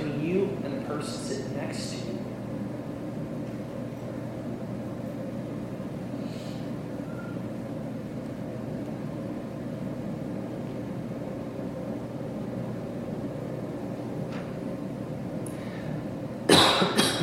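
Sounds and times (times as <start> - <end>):
air rushing from a ventilation vent: 0.0 - 17.2
speech: 1.0 - 2.3.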